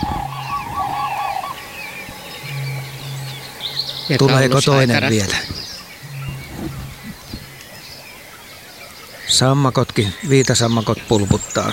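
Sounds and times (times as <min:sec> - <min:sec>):
common cranes calling with rolling trumpeting: 0:00.0 - 0:10.5
smaller birds chirping and twittering: 0:00.0 - 0:11.7
speech: 0:04.1 - 0:05.5, 0:09.4 - 0:11.7.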